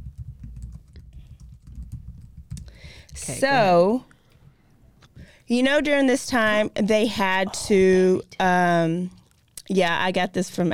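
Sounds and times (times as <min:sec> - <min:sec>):
typing on a computer keyboard: 0:00.0 - 0:02.7
speech: 0:02.8 - 0:04.1, 0:05.5 - 0:10.7.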